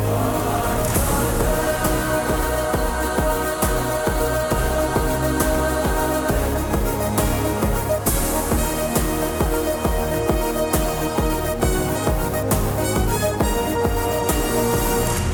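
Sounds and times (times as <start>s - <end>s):
Telugu motion poster ringtone: 0.1s - 15.2s.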